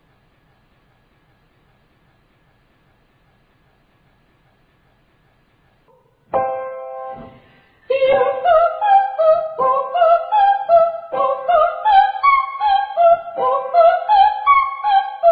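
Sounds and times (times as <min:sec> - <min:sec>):
very high triads and octaves: 0:06.3 - 0:15.2.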